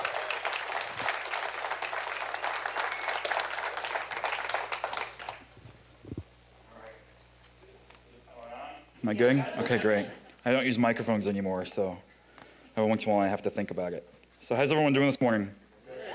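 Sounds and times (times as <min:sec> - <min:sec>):
congregation at a Sunday church service clapping to welcome a preacher: 0:00.0 - 0:05.6
speech: 0:09.0 - 0:12.1, 0:12.8 - 0:15.6.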